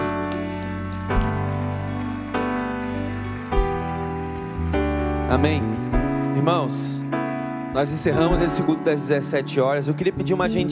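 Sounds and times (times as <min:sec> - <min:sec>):
audience applauding: 0:00.0 - 0:06.8
speech: 0:05.3 - 0:05.8, 0:06.4 - 0:07.0, 0:07.8 - 0:10.7.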